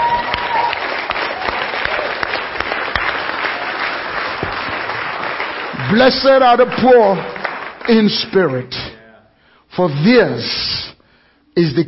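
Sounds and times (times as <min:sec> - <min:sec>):
audience clapping: 0:00.0 - 0:09.0
speech: 0:05.9 - 0:08.8, 0:09.8 - 0:10.9, 0:11.6 - 0:11.8.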